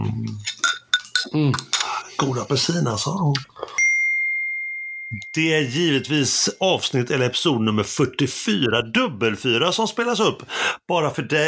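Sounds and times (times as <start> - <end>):
glasses clinking in a toast: 0.4 - 2.0, 3.6 - 7.2
speech: 1.3 - 3.8, 5.3 - 11.4.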